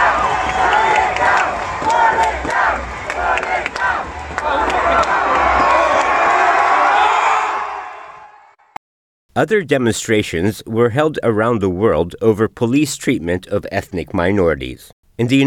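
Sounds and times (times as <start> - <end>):
clapping: 0.0 - 7.0
large protest crowd cheering: 0.0 - 8.8
speech: 9.4 - 15.4.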